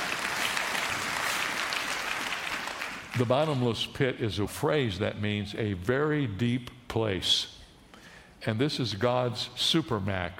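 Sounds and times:
audience clapping: 0.0 - 3.6
speech: 3.2 - 7.6, 8.4 - 10.3.

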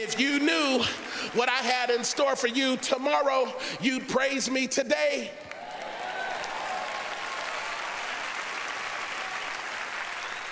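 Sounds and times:
audience applause: 0.0 - 2.6, 5.4 - 10.5
speech: 0.0 - 5.5.

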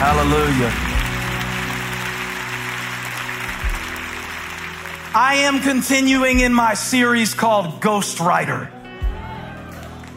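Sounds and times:
audience clapping hands: 0.0 - 6.8, 9.7 - 10.1
speech: 0.2 - 1.0, 5.2 - 8.8.

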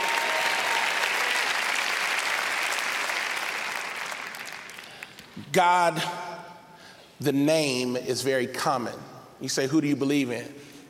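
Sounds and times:
audience applause: 0.0 - 5.3
speech: 5.4 - 6.2, 7.2 - 10.6.

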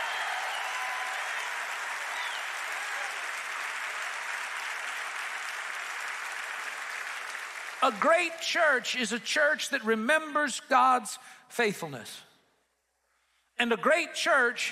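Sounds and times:
audience applause: 0.0 - 8.4
speech: 7.8 - 12.3, 13.6 - 14.6.

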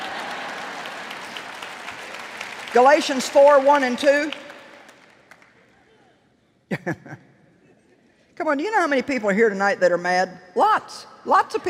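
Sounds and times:
audience clapping: 0.0 - 6.0
speech: 2.8 - 4.4, 6.8 - 7.2, 8.4 - 11.6.

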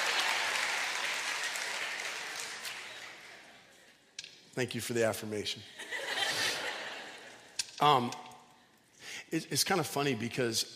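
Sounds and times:
audience applause: 0.0 - 3.5
speech: 4.6 - 6.0, 7.8 - 8.3, 9.3 - 10.7
laughter: 5.7 - 7.5.

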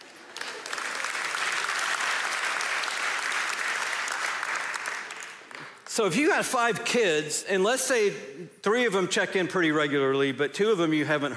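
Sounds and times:
audience applause: 0.0 - 5.9
speech: 6.0 - 11.3.

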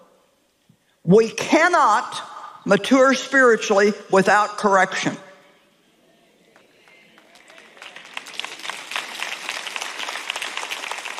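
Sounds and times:
speech: 1.0 - 5.2
thin scattered audience applause: 6.5 - 11.1.

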